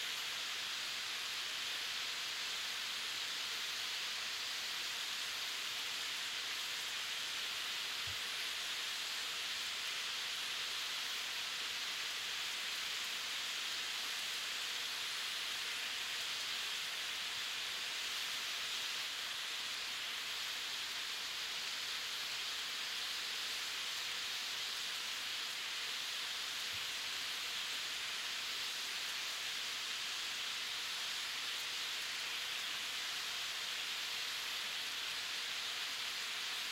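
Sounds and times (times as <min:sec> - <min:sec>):
food sizzling on a restaurant grill: 0:00.0 - 0:36.7.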